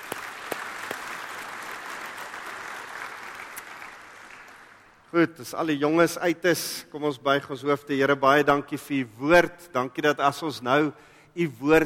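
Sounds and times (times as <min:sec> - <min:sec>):
audience applause: 0:00.0 - 0:05.0
speech: 0:05.1 - 0:11.8.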